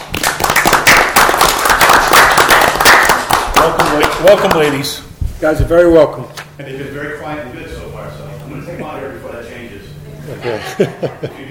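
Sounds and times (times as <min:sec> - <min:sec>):
round of applause: 0:00.0 - 0:04.8
speech: 0:04.2 - 0:11.4
laughter: 0:10.2 - 0:11.4.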